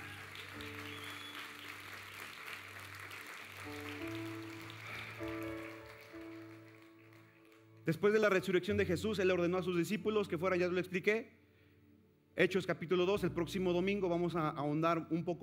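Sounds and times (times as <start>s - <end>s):
crowd applauding: 0.0s - 8.2s
speech: 7.9s - 11.4s, 12.4s - 15.4s.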